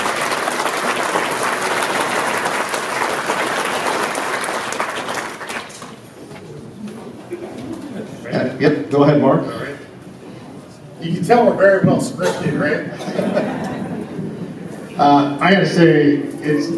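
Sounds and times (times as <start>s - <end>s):
crowd applauding: 0.0s - 6.0s
laughter: 6.9s - 8.5s, 12.7s - 15.0s
speech: 8.6s - 9.7s, 11.0s - 13.5s, 15.0s - 16.7s.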